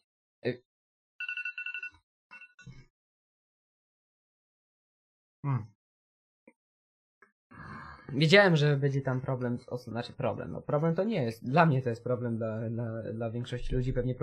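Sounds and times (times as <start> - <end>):
speech: 0.4 - 0.7, 5.4 - 5.8, 8.1 - 14.2
phone ringing: 1.2 - 2.6.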